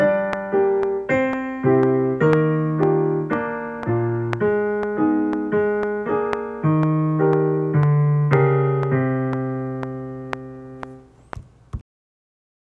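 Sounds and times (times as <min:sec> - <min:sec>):
musical accompaniment: 0:00.0 - 0:11.0.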